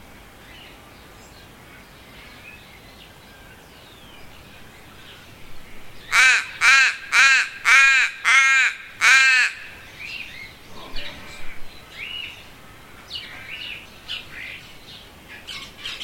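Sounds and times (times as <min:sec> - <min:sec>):
crow cawing: 0:06.1 - 0:09.8.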